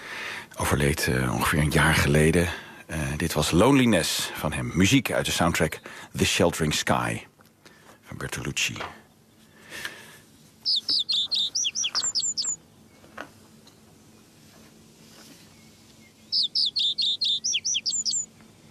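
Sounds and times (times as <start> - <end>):
quiet hum: 0.0 - 18.6
speech: 0.6 - 7.3, 8.1 - 9.0
reed bunting singing: 10.6 - 13.1, 15.5 - 18.6.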